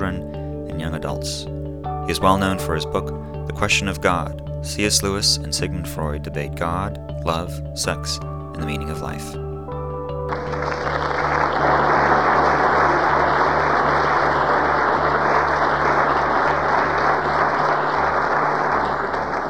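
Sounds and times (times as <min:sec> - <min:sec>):
speech: 0:00.8 - 0:09.5
audience applause before a speech: 0:10.3 - 0:19.4.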